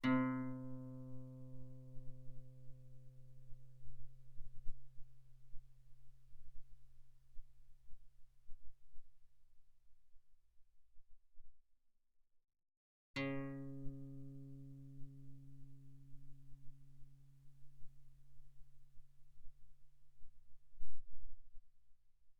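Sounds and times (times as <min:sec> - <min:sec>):
guitar notes played mezzo forte on the A string: 0:00.0 - 0:05.9, 0:13.2 - 0:18.9.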